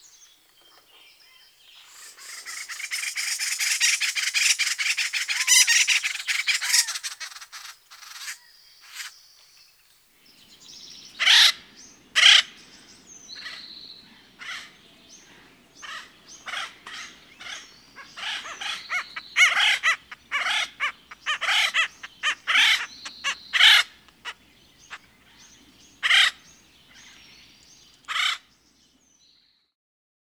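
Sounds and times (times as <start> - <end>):
Acorn woodpecker: 0.1 - 9.5, 14.4 - 28.5.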